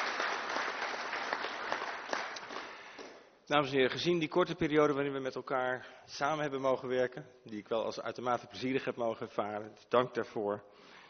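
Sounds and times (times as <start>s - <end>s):
audience applause: 0.0s - 3.2s
speech: 3.5s - 11.0s.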